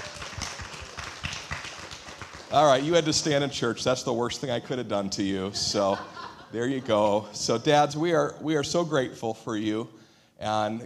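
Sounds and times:
crowd applauding for fathers in church: 0.0s - 3.4s
speech: 2.5s - 10.8s
laughter: 5.2s - 7.3s.

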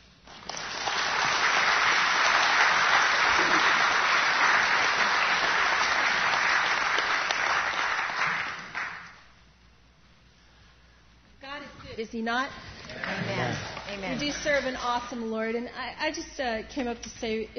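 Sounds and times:
audience applause welcoming missionaries: 0.3s - 9.2s
speech: 12.1s - 12.6s, 13.5s - 17.5s.

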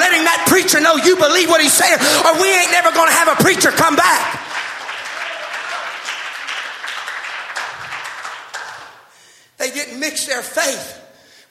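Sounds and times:
speech: 0.2s - 4.4s, 9.8s - 11.4s
audience clapping hands: 2.2s - 9.2s.

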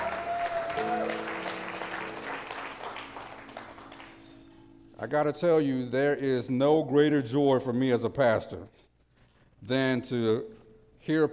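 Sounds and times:
high whoop: 0.0s - 1.8s
audience applauding: 0.0s - 4.5s
speech: 0.8s - 1.4s, 5.0s - 8.8s, 9.6s - 11.3s.

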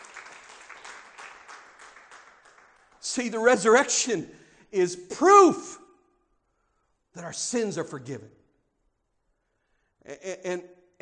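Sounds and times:
audience applause: 0.0s - 3.0s
speech: 3.1s - 5.8s, 7.2s - 8.4s, 10.1s - 11.0s.

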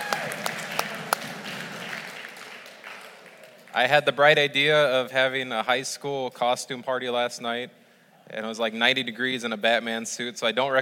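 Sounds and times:
audience clapping: 0.0s - 4.3s
speech: 3.8s - 10.7s.

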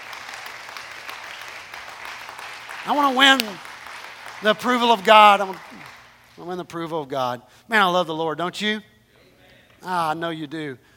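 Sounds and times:
audience hand clapping: 0.0s - 6.6s
speech: 2.8s - 3.7s, 4.4s - 5.8s, 6.4s - 8.9s, 9.8s - 10.9s.

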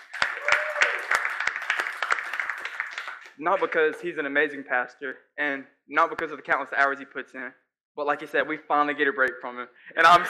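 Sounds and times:
crowd applauding: 0.0s - 4.1s
speech: 3.4s - 10.2s.

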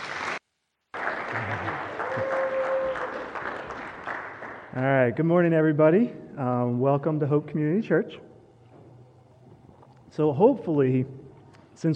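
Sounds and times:
audience applause: 0.0s - 4.7s
speech: 4.8s - 8.3s, 10.2s - 11.2s.

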